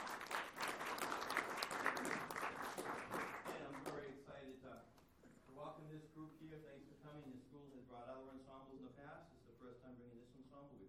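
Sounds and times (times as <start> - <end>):
audience applause: 0.0 - 3.9
speech: 6.4 - 10.8.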